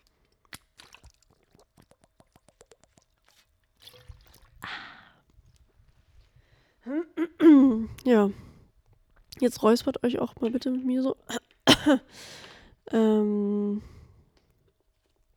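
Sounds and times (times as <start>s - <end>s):
person sipping a drink: 0.0s - 5.7s
speech: 8.0s - 8.4s, 9.4s - 13.9s.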